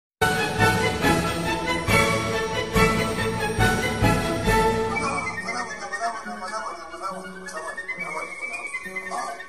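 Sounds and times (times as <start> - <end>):
piano: 0.2 - 5.7.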